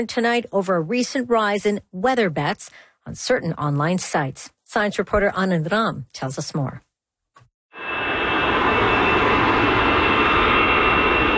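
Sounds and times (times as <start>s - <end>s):
speech: 0.0s - 6.9s
jet aircraft taking off at Paris's biggest airport: 7.8s - 11.3s.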